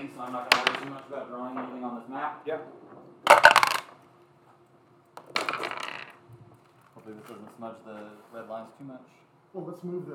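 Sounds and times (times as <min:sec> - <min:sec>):
speech: 0:00.2 - 0:03.6, 0:07.1 - 0:10.1
dice rolled for initiative clattering across a table: 0:00.4 - 0:01.0, 0:03.3 - 0:04.0, 0:05.2 - 0:06.2.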